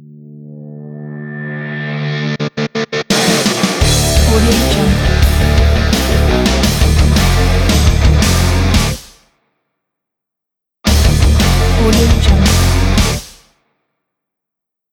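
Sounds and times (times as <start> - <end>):
rock music intro: 0.6 - 9.1, 10.9 - 13.4.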